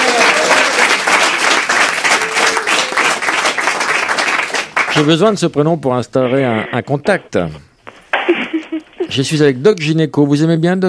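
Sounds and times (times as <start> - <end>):
studio audience applause: 0.0 - 5.2
speech: 5.0 - 7.7, 9.1 - 10.8.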